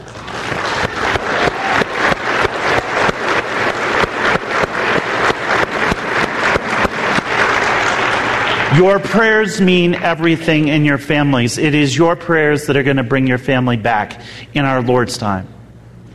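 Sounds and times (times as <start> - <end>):
audience applause: 0.0 - 10.4
speech: 8.8 - 15.6.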